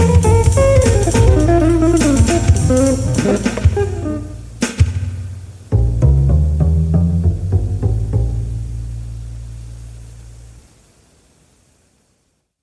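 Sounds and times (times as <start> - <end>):
music beat: 0.0 - 9.7.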